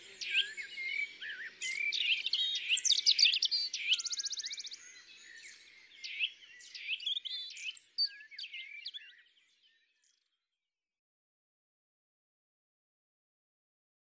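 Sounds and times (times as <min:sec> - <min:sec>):
European robin singing: 0:00.0 - 0:10.3.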